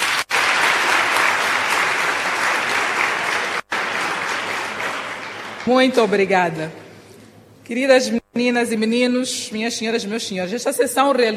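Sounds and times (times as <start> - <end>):
audience applause: 0.0 - 6.0
speech: 5.7 - 6.8, 7.7 - 11.3.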